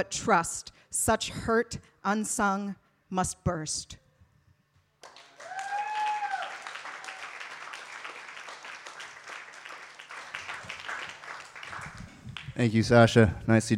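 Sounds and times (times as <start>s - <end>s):
speech: 0.0s - 4.0s, 12.6s - 13.7s
audience applause after reading: 5.0s - 12.7s.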